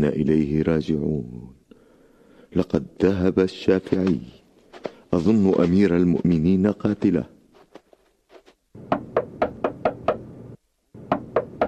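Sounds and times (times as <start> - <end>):
speech: 0.0 - 1.6, 2.5 - 4.4, 5.1 - 7.3
knocking on a door: 8.8 - 10.2, 11.1 - 11.6.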